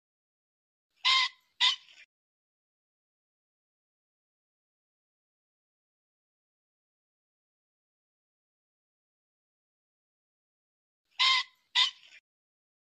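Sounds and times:
pheasant squawking: 1.0 - 2.0, 11.2 - 12.2.

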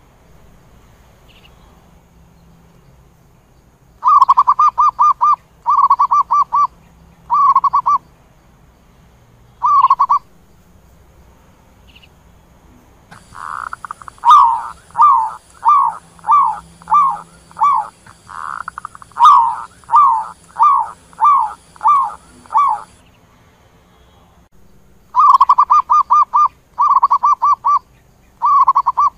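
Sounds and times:
zebra dove cooing: 4.0 - 6.7, 7.3 - 8.0, 9.6 - 10.2, 13.1 - 23.0, 25.2 - 27.8, 28.4 - 29.1.

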